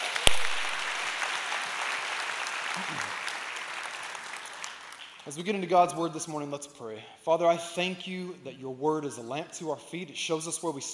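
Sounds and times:
church congregation applauding to welcome guests: 0.0 - 5.4
speech: 2.8 - 3.2, 5.3 - 10.9.

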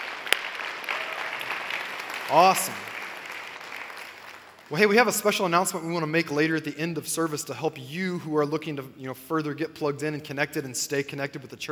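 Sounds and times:
church congregation applauding to welcome guests at a morning service: 0.0 - 5.6
speech: 2.3 - 2.9, 4.7 - 11.7.

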